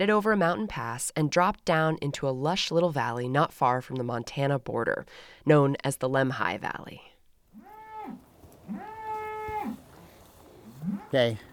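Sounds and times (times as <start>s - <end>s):
speech: 0.0s - 7.1s, 10.8s - 11.5s
group of cows mooing: 7.5s - 11.5s.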